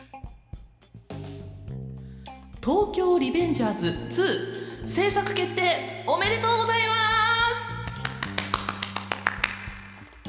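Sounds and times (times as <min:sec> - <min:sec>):
speech: 0:02.6 - 0:06.9
hand claps with echo effect applied: 0:07.7 - 0:10.2.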